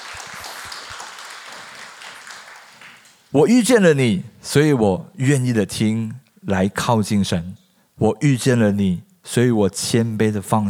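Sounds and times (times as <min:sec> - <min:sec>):
Chinese-speaking church congregation applauding after a prayer: 0:00.0 - 0:03.4
speech: 0:03.3 - 0:10.6.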